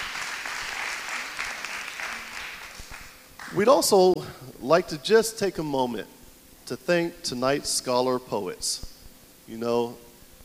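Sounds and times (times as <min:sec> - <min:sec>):
audience applause: 0:00.0 - 0:03.6
speech: 0:03.5 - 0:08.9, 0:09.5 - 0:10.1.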